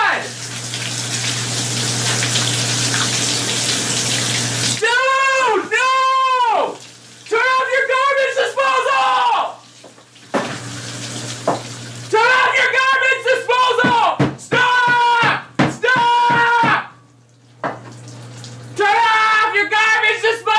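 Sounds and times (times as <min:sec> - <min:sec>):
person shouting in strained vocal outbursts: 0:00.0 - 0:00.3, 0:04.8 - 0:09.6, 0:12.1 - 0:17.0, 0:18.8 - 0:20.5
sink overflowing with water: 0:00.0 - 0:12.7, 0:15.2 - 0:20.5
garbage disposal running: 0:00.0 - 0:20.5.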